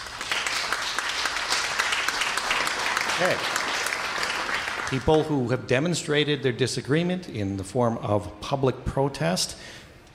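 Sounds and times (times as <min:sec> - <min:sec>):
crowd applause: 0:00.0 - 0:05.4
speech: 0:03.2 - 0:03.6, 0:04.9 - 0:10.1.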